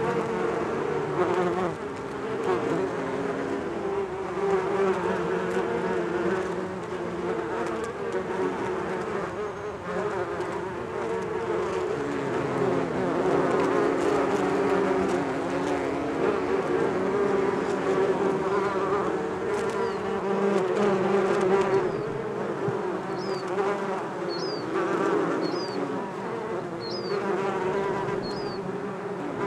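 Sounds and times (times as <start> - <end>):
bees buzzing: 0.0 - 29.4
bird chirping: 23.1 - 23.5, 24.3 - 24.7, 25.4 - 25.8, 26.8 - 27.2, 28.2 - 28.6.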